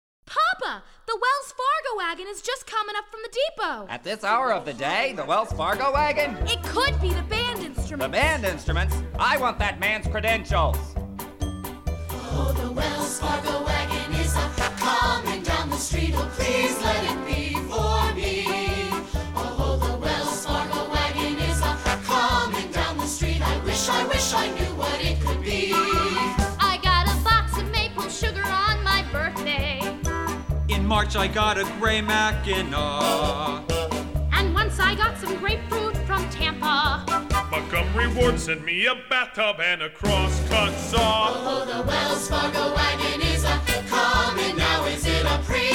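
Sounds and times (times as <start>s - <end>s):
vocals: 0.3s - 11.0s, 11.9s - 30.0s, 30.7s - 45.7s.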